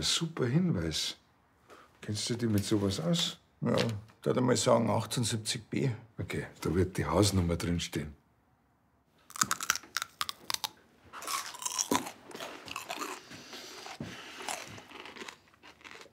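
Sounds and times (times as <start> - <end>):
speech: 0.0 - 1.2, 2.0 - 8.2
loud crunchy chewing: 9.3 - 16.1.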